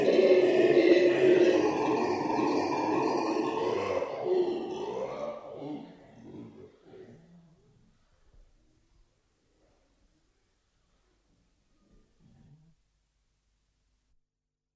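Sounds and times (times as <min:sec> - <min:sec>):
Black-and-gold howler monkey roaring: 0:00.0 - 0:07.7.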